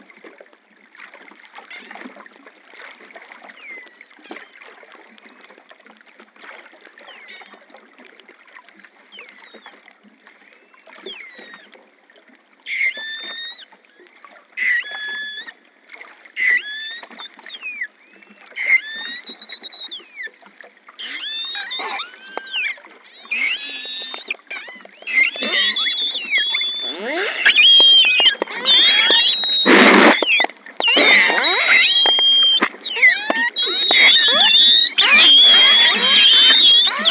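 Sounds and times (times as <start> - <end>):
globicephala Melas calls: 21.0 - 37.0.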